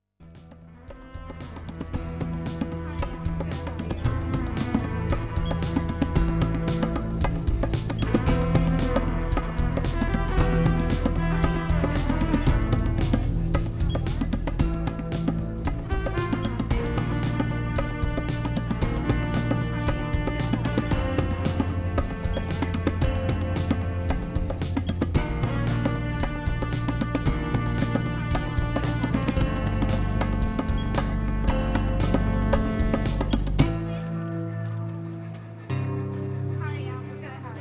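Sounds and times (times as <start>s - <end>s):
chill cello music: 0.4s - 36.8s.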